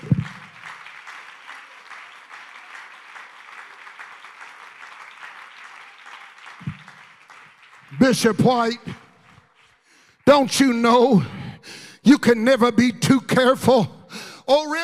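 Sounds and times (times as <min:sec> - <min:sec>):
low thumps: 0:00.0 - 0:00.5
crowd clapping: 0:00.0 - 0:11.2
speech: 0:08.0 - 0:08.9, 0:10.3 - 0:11.4, 0:12.0 - 0:14.8.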